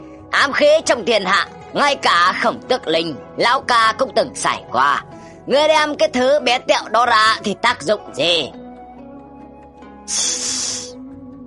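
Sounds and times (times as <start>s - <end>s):
speech: 0.4s - 8.6s, 10.1s - 10.8s
sharp hiss: 10.1s - 11.0s.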